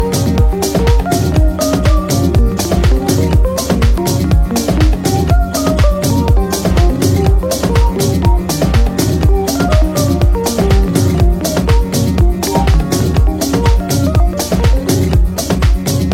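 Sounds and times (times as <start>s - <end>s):
ringtone: 0.0s - 15.4s.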